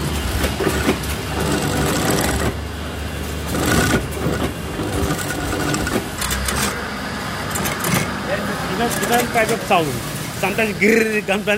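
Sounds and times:
sewing machine stitching velcro onto trousers in a clothing workshop: 0:00.2 - 0:02.7, 0:03.4 - 0:06.8, 0:07.5 - 0:08.2
people talking: 0:08.3 - 0:11.5.

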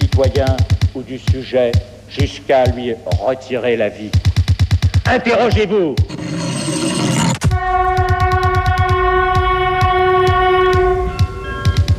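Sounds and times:
speech: 0:00.2 - 0:04.3, 0:05.1 - 0:08.0
TGV high-speed train horn-like tone: 0:07.4 - 0:11.8.

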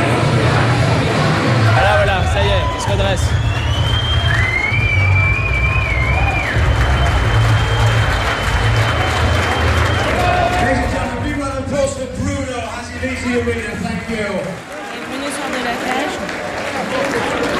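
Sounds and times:
crowd cheering and applause: 0:00.0 - 0:17.5
whistles: 0:03.2 - 0:10.2.

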